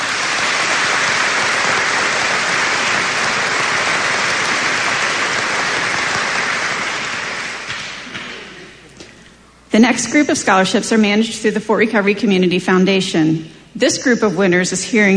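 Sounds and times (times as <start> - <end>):
audience applause for scholarship recipients: 0.0 - 8.9
speech: 9.8 - 15.1.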